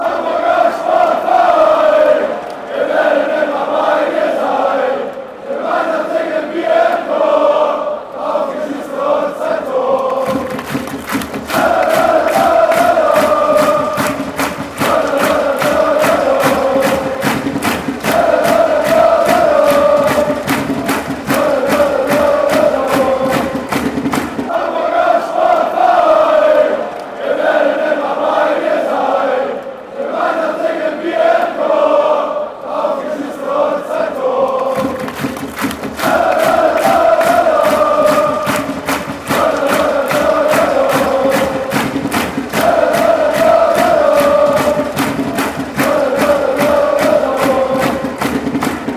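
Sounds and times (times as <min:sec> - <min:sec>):
sports fans chanting: 0:00.0 - 0:48.9.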